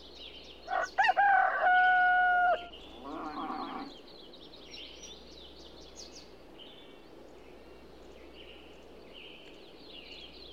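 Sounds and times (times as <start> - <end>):
rooster crow: 0.7 - 3.9.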